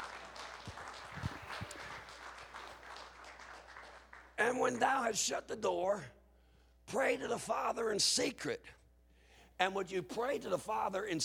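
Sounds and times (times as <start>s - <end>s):
audience applause: 0.0s - 4.3s
speech: 4.4s - 6.2s, 6.9s - 8.8s, 9.6s - 11.2s.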